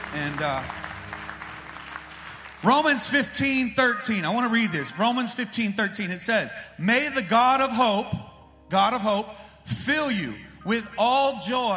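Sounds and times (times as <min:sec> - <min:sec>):
church congregation applauding the worship team: 0:00.0 - 0:03.3
speech: 0:00.1 - 0:00.8, 0:02.6 - 0:11.7.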